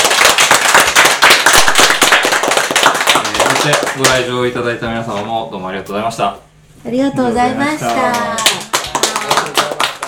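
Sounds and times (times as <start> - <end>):
audience applause: 0.0 - 4.2, 7.8 - 10.0
speech: 3.7 - 8.4.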